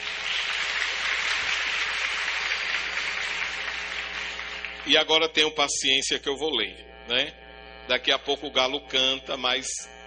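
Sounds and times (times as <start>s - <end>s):
audience applause: 0.0s - 4.9s
speech: 4.9s - 10.0s.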